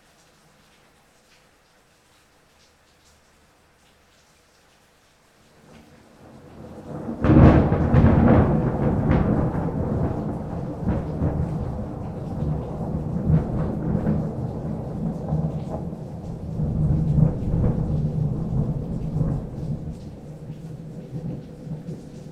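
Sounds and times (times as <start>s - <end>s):
thunder: 5.7s - 22.3s.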